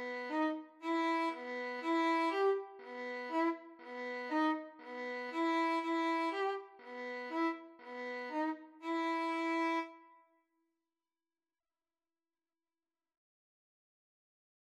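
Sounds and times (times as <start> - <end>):
Bulgarish violin: 0.0 - 10.2.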